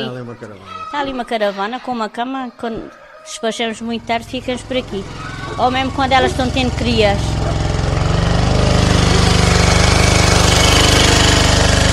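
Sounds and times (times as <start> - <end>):
speech: 0.0 - 7.6
generator running: 3.9 - 11.9.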